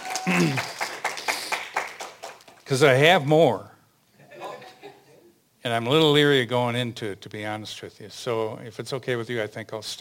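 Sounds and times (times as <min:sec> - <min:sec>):
audience clapping: 0:00.0 - 0:02.9
speech: 0:00.2 - 0:00.8, 0:02.7 - 0:03.7, 0:05.6 - 0:09.9.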